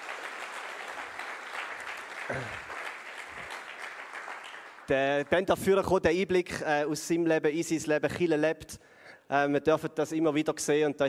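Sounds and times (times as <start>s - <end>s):
audience applause: 0.0s - 5.0s
speech: 2.3s - 2.7s, 4.9s - 11.0s.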